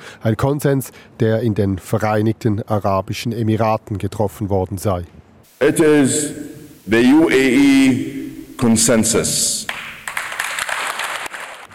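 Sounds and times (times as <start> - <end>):
speech: 0.2 - 9.9
audience applause at climate conference: 9.7 - 11.7.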